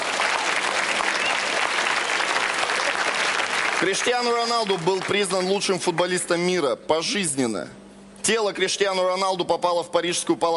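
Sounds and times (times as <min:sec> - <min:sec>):
audience applause: 0:00.0 - 0:05.6
speech: 0:03.8 - 0:10.5.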